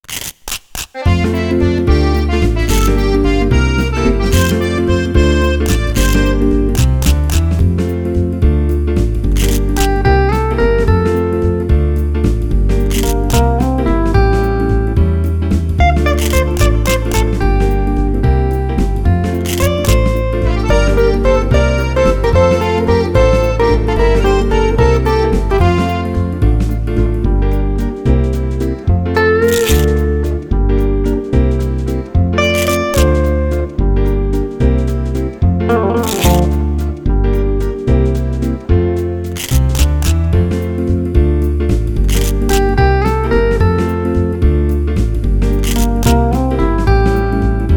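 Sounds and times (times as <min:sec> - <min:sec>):
instrumental music: 0:00.0 - 0:47.7.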